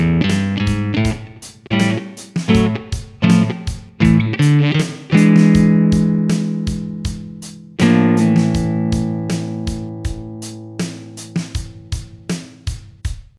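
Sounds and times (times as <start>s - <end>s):
blues riff in A on nylon strings: 0.0s - 12.5s.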